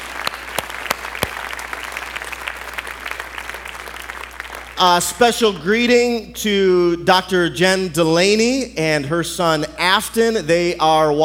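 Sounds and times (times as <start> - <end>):
audience clapping: 0.0 - 5.6
speech: 4.8 - 11.2.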